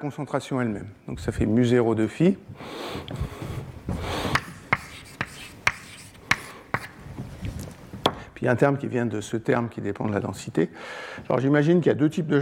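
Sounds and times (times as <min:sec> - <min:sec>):
speech: 0:00.0 - 0:04.4, 0:08.4 - 0:12.4
lecturer writing an equation on a board: 0:04.0 - 0:07.0.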